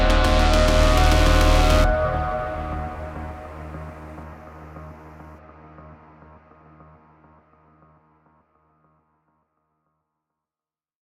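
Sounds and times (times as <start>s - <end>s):
base main ambient sound: 0.0s - 5.5s.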